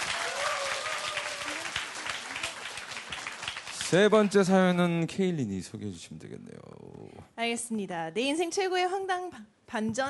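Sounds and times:
small group clapping: 0.0 - 4.7
speech: 3.9 - 10.0.

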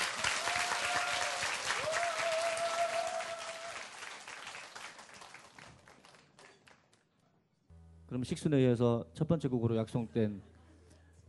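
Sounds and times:
audience applause welcoming a musician: 0.0 - 6.9
speech: 8.1 - 10.5.

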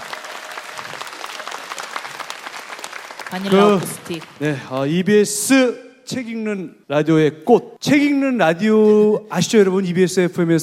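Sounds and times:
crowd applauding: 0.0 - 5.1
speech: 3.3 - 10.6.

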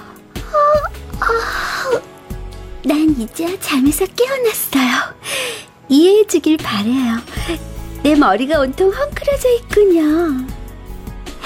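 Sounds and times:
drawn-out voiced yawn: 0.1 - 2.1
speech: 3.2 - 10.5.

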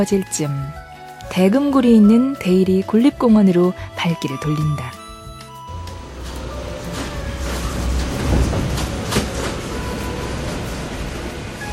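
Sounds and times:
speech: 0.0 - 5.0
monorail train running: 4.2 - 11.7.

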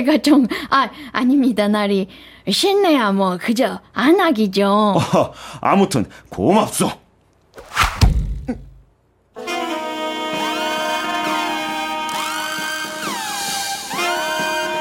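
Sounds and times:
speech: 0.0 - 7.0
arrow flying in and striking: 7.6 - 8.6
music with gliding bending tones: 9.4 - 14.7.

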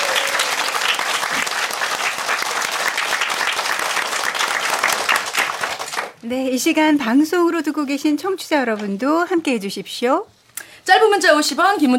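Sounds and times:
audience applause: 0.0 - 6.2
speech: 6.3 - 11.9.

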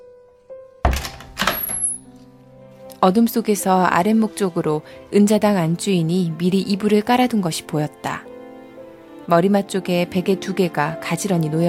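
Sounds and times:
door opening: 0.8 - 2.3
speech: 3.0 - 8.3, 9.3 - 11.6.

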